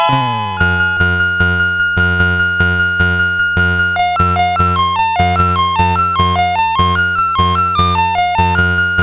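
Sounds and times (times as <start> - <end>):
SID CSG8580R5 chip music: 0.1 - 9.0.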